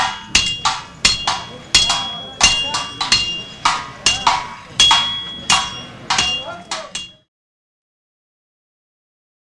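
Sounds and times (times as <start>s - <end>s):
hammer striking tin anvil: 0.0s - 7.3s.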